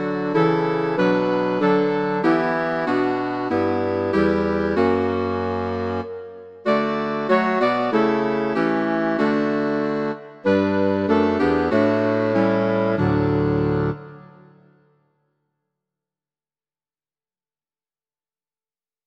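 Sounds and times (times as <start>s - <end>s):
clarinet trio: 0.0s - 14.7s
bassoon: 0.0s - 14.8s.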